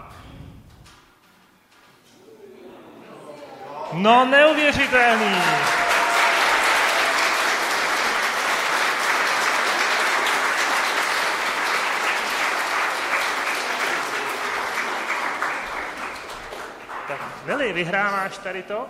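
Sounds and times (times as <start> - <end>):
audience applause: 3.6 - 17.9
speech: 3.9 - 5.8, 17.6 - 18.8.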